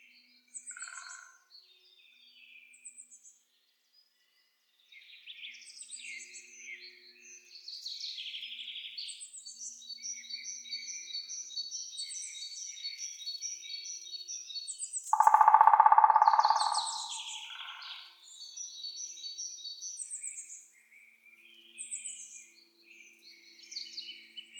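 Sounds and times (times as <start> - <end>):
woodpeckers Picidae: 15.2 - 18.0.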